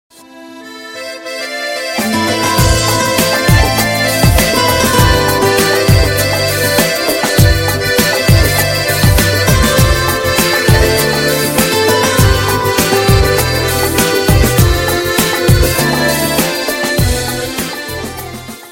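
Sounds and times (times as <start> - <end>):
Arabic music: 0.2 - 18.7.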